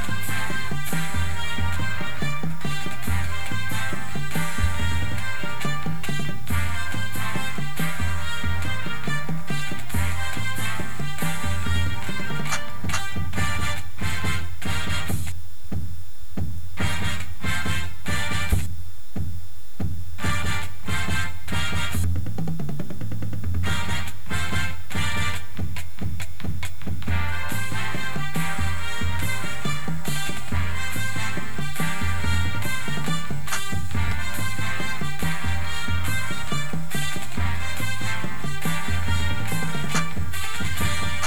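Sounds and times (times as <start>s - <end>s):
bass with music: 0.0s - 18.8s, 19.8s - 41.2s.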